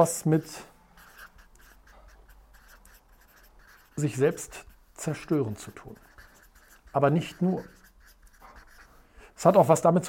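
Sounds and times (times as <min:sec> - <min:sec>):
speech: 0:00.0 - 0:00.7, 0:04.0 - 0:06.1, 0:06.9 - 0:07.8, 0:09.4 - 0:10.0
scratchy pen strokes from handwriting: 0:01.0 - 0:09.0.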